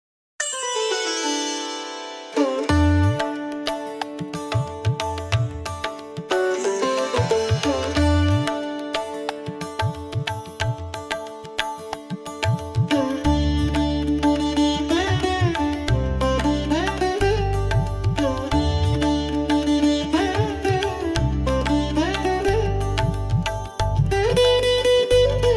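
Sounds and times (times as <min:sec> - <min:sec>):
Indian music: 0:00.4 - 0:25.5.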